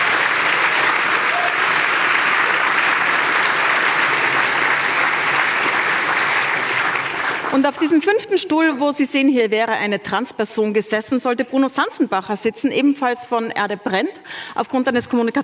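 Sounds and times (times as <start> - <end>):
audience applause: 0.0 - 8.2
speech: 7.6 - 15.4.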